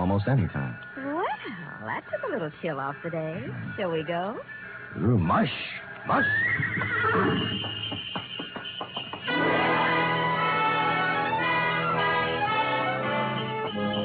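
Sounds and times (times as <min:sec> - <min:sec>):
speech: 0:00.1 - 0:00.7, 0:01.9 - 0:08.2
sleigh runners squeaking on snow: 0:06.1 - 0:14.0
soft pad of horse hooves: 0:06.8 - 0:09.4
jingling sleigh bells: 0:07.0 - 0:14.0.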